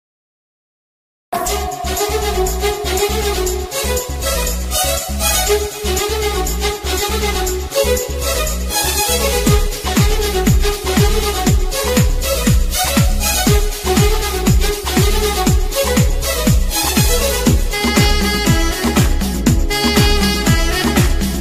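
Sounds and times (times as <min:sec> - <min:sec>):
background music ringtone song: 0:01.4 - 0:21.3.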